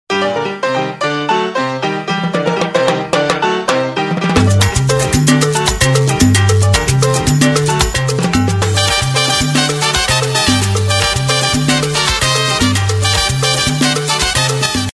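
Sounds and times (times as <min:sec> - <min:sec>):
hard salsa music: 0:00.1 - 0:14.9.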